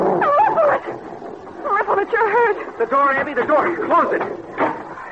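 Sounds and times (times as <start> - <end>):
high wavering yelp-like cries: 0.2 - 0.9
speech: 2.3 - 4.6.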